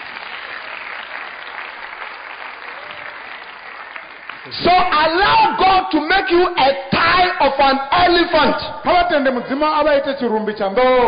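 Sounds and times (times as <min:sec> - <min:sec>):
audience clapping: 0:00.0 - 0:05.0
speech: 0:04.4 - 0:11.0.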